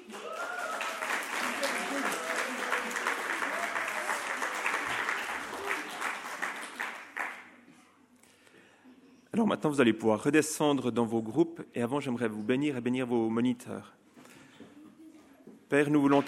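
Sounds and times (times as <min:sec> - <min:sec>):
group applauding the children's decorations at a children's group gathering: 0:00.0 - 0:07.6
speech: 0:09.4 - 0:14.0, 0:15.7 - 0:16.2.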